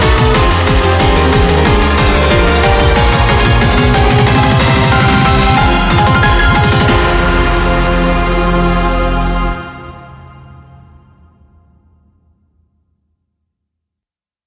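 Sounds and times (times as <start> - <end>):
boss battle game music: 0.0 - 9.7.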